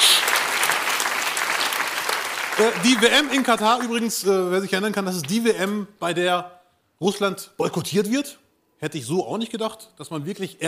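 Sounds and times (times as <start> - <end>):
steady crowd applause: 0.0 - 4.0
speech: 2.6 - 10.6.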